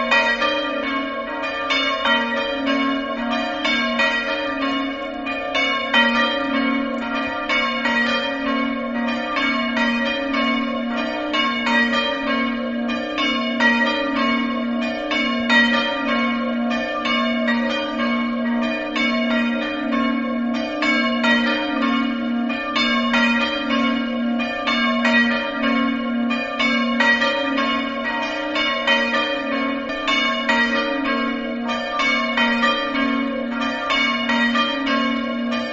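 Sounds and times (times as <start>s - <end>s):
bells ringing: 0.0s - 35.7s.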